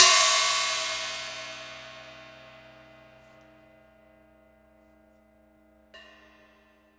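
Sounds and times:
prepared drums: 0:00.0 - 0:02.3.

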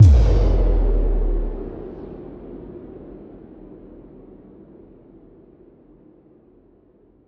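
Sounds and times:
impact: 0:00.0 - 0:02.6.

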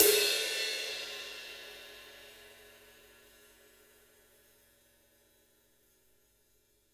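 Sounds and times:
drum kit ride cymbal: 0:00.0 - 0:02.4.

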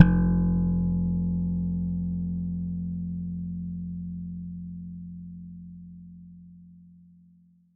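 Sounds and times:
electric bass playing F1: 0:00.0 - 0:06.8.

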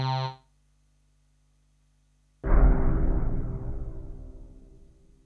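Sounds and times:
musical stabs: 0:02.5 - 0:05.1.

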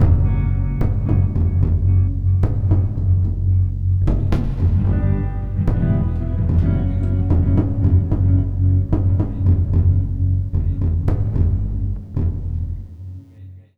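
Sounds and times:
full music mix: 0:00.0 - 0:13.3.

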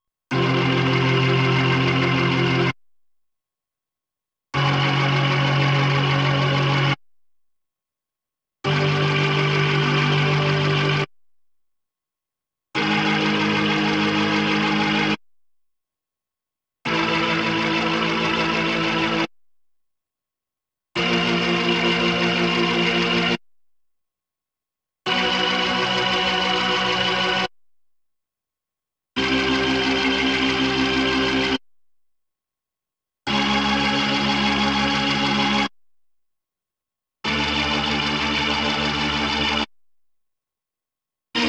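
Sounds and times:
Hammond B3 organ: 0:00.3 - 0:02.7, 0:04.6 - 0:07.0, 0:08.7 - 0:11.1, 0:12.8 - 0:15.2, 0:16.9 - 0:19.3, 0:21.0 - 0:23.4, 0:25.1 - 0:27.5, 0:29.2 - 0:31.6, 0:33.3 - 0:35.7, 0:37.3 - 0:39.7.

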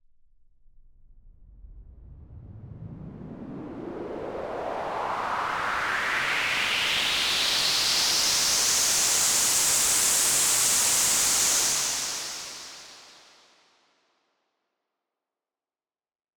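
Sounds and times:
long noise sweep: 0:02.3 - 0:13.3.

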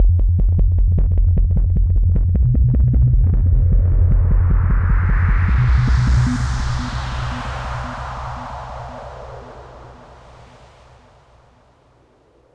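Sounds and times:
hardcore breakbeat bass at 153 bpm in F minor: 0:00.0 - 0:06.9.

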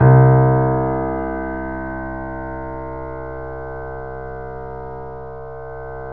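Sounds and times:
Yamaha C7 grand piano: 0:00.0 - 0:06.1.

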